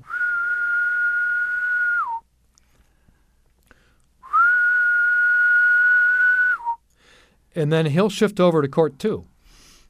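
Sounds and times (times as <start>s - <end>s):
person whistling an imitation of a male insect's calling song: 0.0s - 2.3s, 4.2s - 6.9s
speech: 7.6s - 9.3s.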